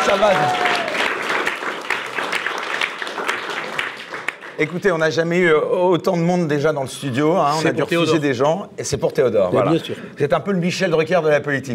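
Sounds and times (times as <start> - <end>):
studio audience ovation: 0.0 - 5.3
speech: 0.1 - 0.8, 4.6 - 11.7.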